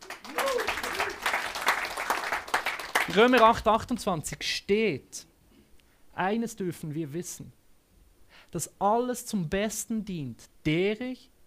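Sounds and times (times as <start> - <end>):
audience applause: 0.0 - 3.6
whoop or cheer: 0.2 - 1.4
speech: 3.1 - 5.3, 6.2 - 7.6, 8.5 - 11.3.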